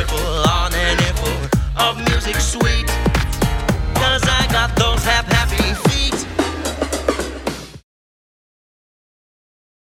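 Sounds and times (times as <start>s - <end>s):
electro swing music: 0.0s - 7.8s.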